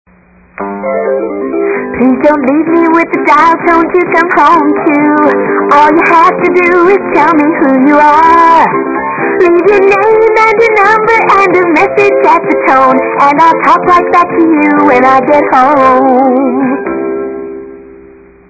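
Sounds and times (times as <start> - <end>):
country music: 0.6 - 18.0.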